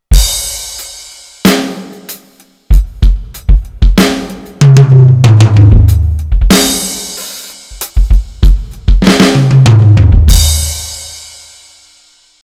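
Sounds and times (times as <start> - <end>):
Roland TD-4KP electronic drum kit: 0.1 - 11.5.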